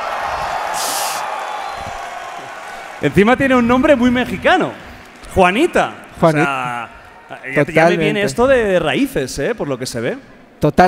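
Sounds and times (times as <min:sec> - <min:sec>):
brief sharp whoop: 0:00.0 - 0:02.8
audience applause: 0:00.0 - 0:07.8
cheers: 0:00.0 - 0:07.9
speech: 0:03.0 - 0:10.8.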